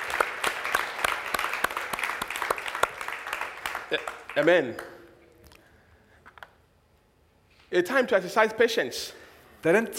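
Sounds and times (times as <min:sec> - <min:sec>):
audience applause: 0:00.0 - 0:04.9
speech: 0:03.9 - 0:04.9, 0:07.7 - 0:09.9.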